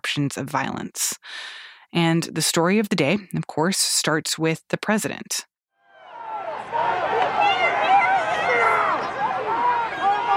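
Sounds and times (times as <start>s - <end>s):
speech: 0.2s - 5.5s
large crowd chatter at outdoor rally: 6.0s - 10.3s.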